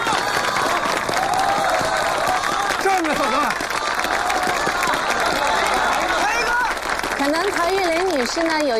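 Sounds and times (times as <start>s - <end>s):
audience applause: 0.0s - 8.7s
speech: 7.2s - 8.7s.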